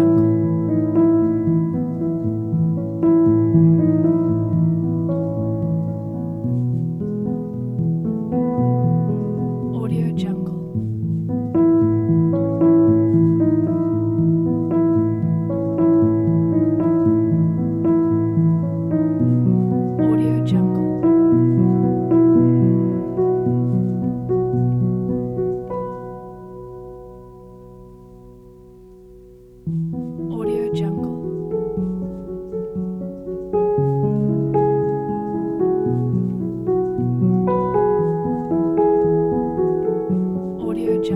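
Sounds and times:
inspiring neoclassical piano piece: 0.0s - 41.1s.

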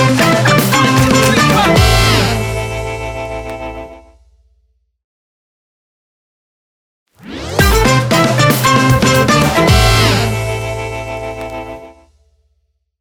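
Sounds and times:
groovy upbeat funk opener: 0.0s - 4.1s, 7.2s - 12.0s.

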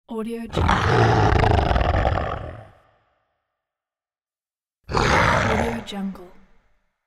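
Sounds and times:
lion roar: 0.5s - 3.0s, 4.9s - 6.0s.

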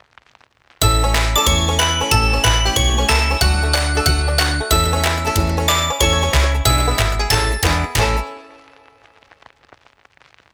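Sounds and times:
country kids christmas logo jingle: 0.8s - 9.2s.

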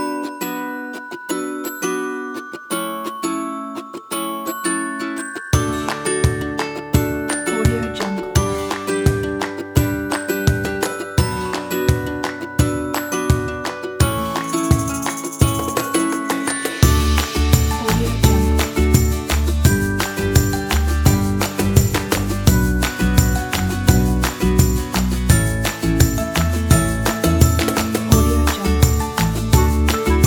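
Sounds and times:
happy upbeat ukulele music: 0.0s - 30.2s.

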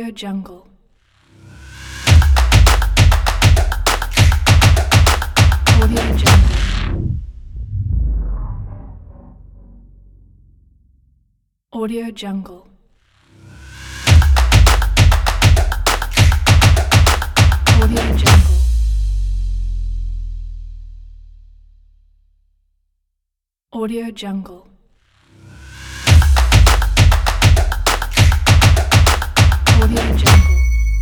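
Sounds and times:
drum logo: 1.6s - 9.0s, 13.6s - 21.2s, 25.6s - 30.9s.

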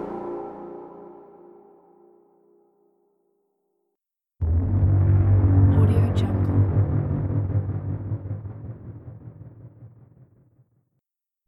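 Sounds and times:
background braams: 4.4s - 10.3s.

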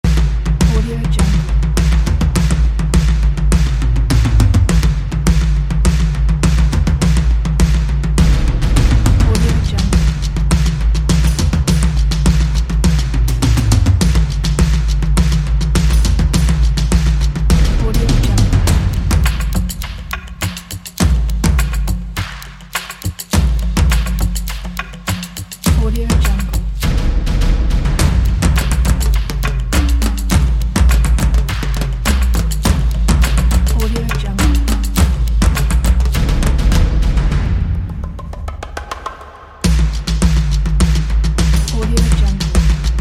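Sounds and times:
big toms dynamic percussion: 0.0s - 42.9s.

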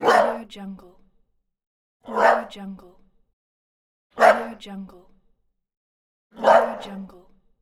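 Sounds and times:
dog: 0.0s - 0.5s, 2.0s - 2.6s, 4.2s - 4.6s, 6.4s - 7.0s.

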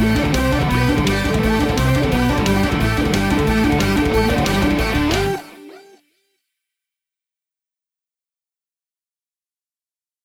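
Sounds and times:
metal rock music: 0.0s - 5.9s.

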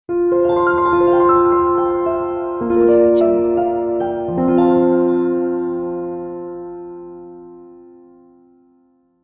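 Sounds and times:
piano logo jingle: 0.1s - 8.2s.

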